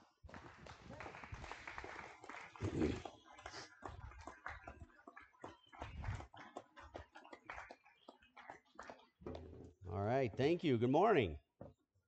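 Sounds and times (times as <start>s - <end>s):
audience clapping to greet speaker: 0.0s - 9.2s
speech: 10.3s - 11.4s.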